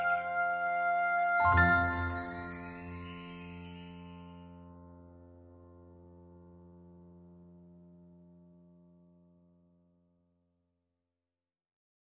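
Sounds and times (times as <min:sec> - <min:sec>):
orchestral music: 0:00.0 - 0:04.5.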